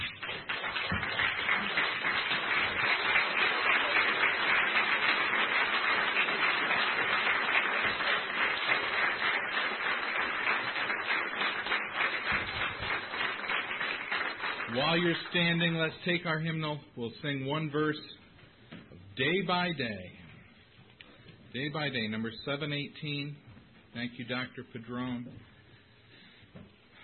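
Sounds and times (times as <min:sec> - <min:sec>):
large crowd applause: 0:00.0 - 0:15.6
speech: 0:15.0 - 0:18.2, 0:19.2 - 0:20.1, 0:21.5 - 0:25.5.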